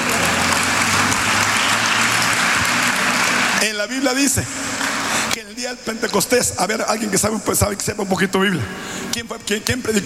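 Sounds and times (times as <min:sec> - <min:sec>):
audience applause: 0:00.0 - 0:05.1
speech: 0:03.8 - 0:04.7, 0:05.6 - 0:10.0.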